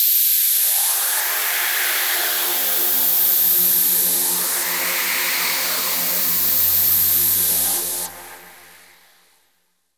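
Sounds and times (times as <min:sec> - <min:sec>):
noise effect: 0:00.2 - 0:09.4.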